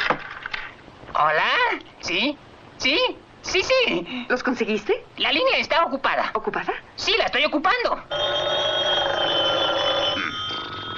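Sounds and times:
speech: 0:01.2 - 0:08.7
fire alarm bell ringing: 0:08.1 - 0:10.9.

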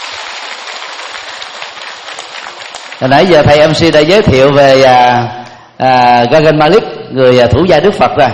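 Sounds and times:
audience applause: 0:00.0 - 0:03.6
speech: 0:03.0 - 0:08.3.

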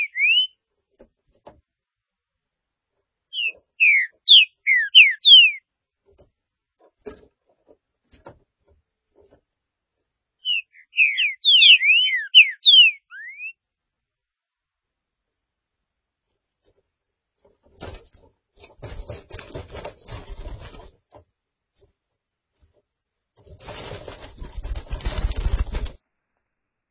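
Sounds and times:
green-winged saltator song: 0:00.0 - 0:00.6, 0:03.3 - 0:05.6, 0:10.4 - 0:13.6.

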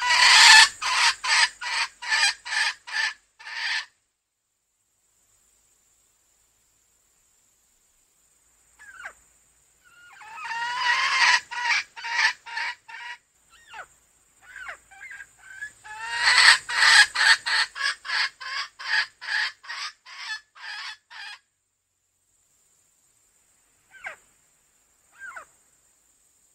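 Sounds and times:
female junglefowl clucking: 0:00.0 - 0:03.9, 0:09.9 - 0:21.4.

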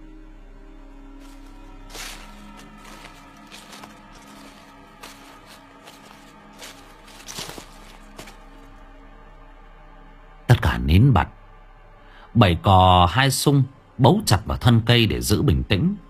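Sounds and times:
rustling footsteps crunching through dry leaves or brush: 0:01.2 - 0:08.7
speech: 0:10.8 - 0:11.4, 0:12.4 - 0:16.0.

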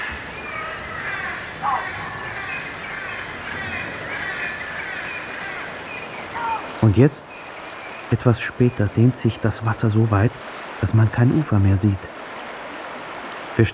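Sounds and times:
flock of colourful parrots squawking in trees of flooded forests: 0:00.0 - 0:10.2
speech: 0:06.8 - 0:07.3, 0:08.1 - 0:12.2, 0:13.6 - 0:13.7.

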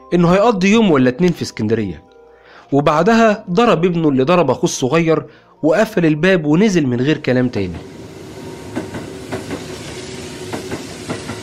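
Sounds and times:
speech: 0:00.1 - 0:02.1, 0:02.7 - 0:08.0
train rumbling on rails: 0:07.7 - 0:11.4
train wheels clacking on rail joints: 0:08.7 - 0:11.4.

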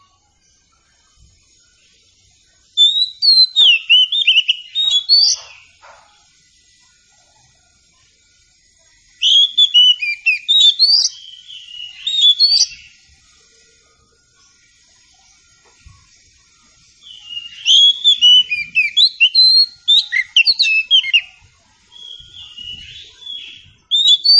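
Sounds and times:
Oriental Magpie-Robin song: 0:02.6 - 0:05.9, 0:09.1 - 0:13.1, 0:16.8 - 0:24.3.

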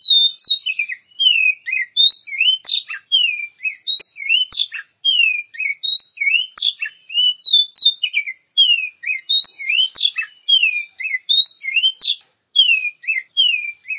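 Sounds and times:
Oriental magpie-robin singing: 0:00.0 - 0:13.9.

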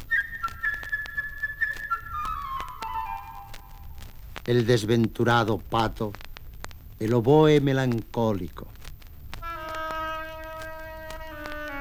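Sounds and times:
solo flute playing a bright birdlike theme: 0:00.0 - 0:04.1, 0:09.4 - 0:11.7
faint clicks: 0:00.0 - 0:11.7
speech: 0:04.5 - 0:06.2, 0:07.0 - 0:08.8.

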